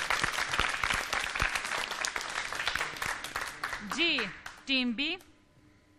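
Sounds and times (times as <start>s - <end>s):
loud applause: 0.0s - 4.5s
speech: 3.9s - 5.3s.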